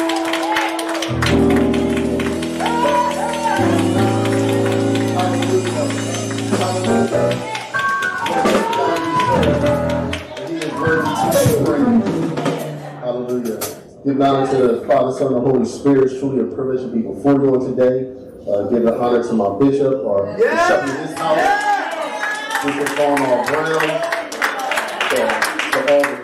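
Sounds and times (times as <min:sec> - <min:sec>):
audience applause, hand clapping: 0:00.0 - 0:12.2, 0:20.8 - 0:26.2
loud sustained organ chords: 0:00.0 - 0:13.6
bass: 0:01.0 - 0:07.6, 0:08.4 - 0:12.6
speech: 0:14.2 - 0:21.7, 0:22.6 - 0:24.2.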